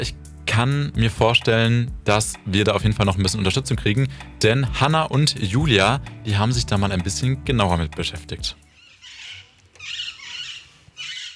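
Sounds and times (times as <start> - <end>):
speech: 0.0 - 8.6
rose-ringed parakeets screeching: 8.7 - 11.3.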